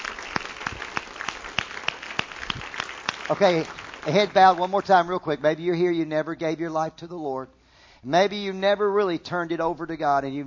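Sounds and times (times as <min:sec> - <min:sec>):
crowd clapping in rhythm: 0:00.0 - 0:05.5
speech: 0:03.3 - 0:10.4.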